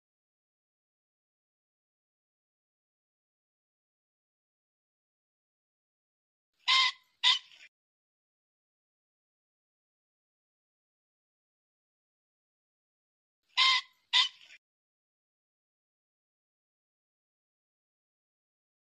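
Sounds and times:
pheasant squawking: 6.6s - 7.7s, 13.6s - 14.6s.

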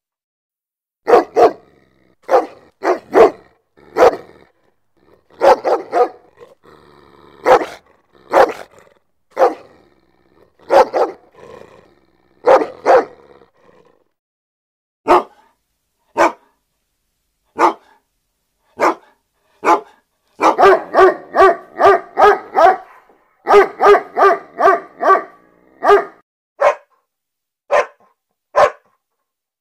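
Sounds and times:
German Shepherd barking: 1.0s - 4.4s, 5.3s - 6.4s, 7.4s - 9.8s, 10.6s - 11.4s, 12.4s - 13.3s, 15.0s - 16.6s, 17.5s - 18.0s, 18.7s - 27.0s, 27.7s - 29.0s.

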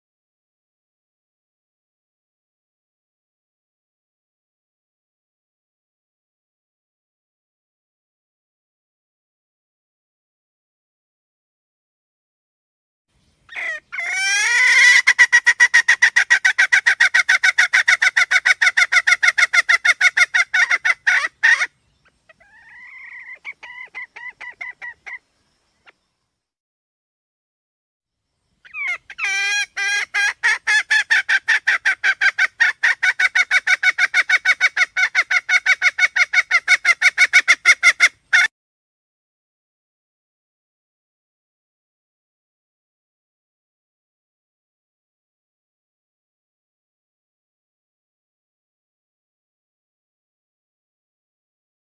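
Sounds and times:
red junglefowl hen cackling: 13.5s - 25.2s, 28.6s - 38.5s.

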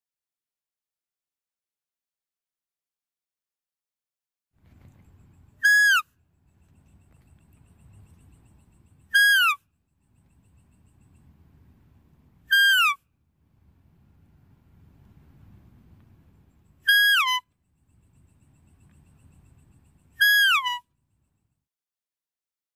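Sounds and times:
deer whistled calls: 5.6s - 6.1s, 9.1s - 9.6s, 12.5s - 13.0s, 16.8s - 17.4s, 20.1s - 20.9s.

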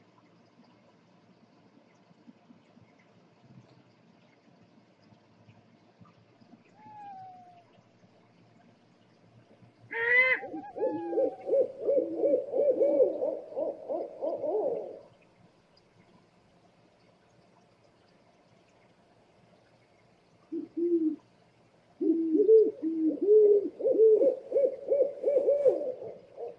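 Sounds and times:
owl hooting: 9.9s - 15.0s, 20.5s - 21.2s, 22.0s - 26.5s.

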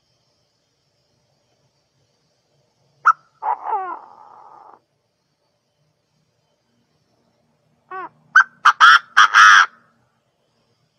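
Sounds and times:
partridge calling: 3.0s - 4.8s, 7.9s - 9.8s.

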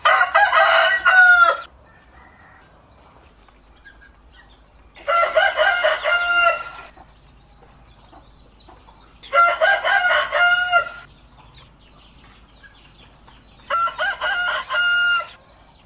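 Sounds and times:
rooster crowing: 0.0s - 2.8s, 5.0s - 6.9s, 9.2s - 11.1s, 13.7s - 15.6s.

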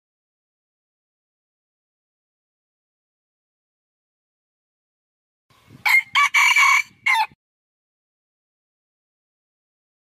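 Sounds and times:
red junglefowl crowing: 5.8s - 7.4s.

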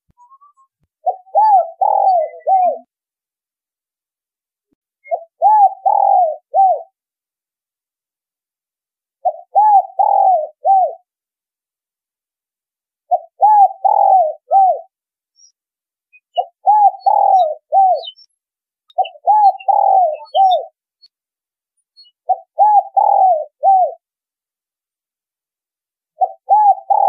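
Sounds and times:
spotted dove cooing: 1.0s - 2.9s, 5.1s - 6.9s, 9.2s - 11.0s, 13.1s - 14.9s, 16.4s - 18.2s, 18.9s - 20.8s, 22.2s - 24.0s, 26.2s - 27.0s.

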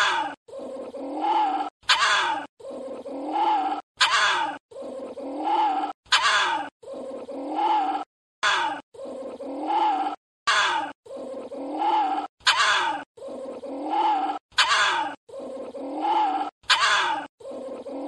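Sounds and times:
small Indian civet moaning: 0.0s - 18.0s.

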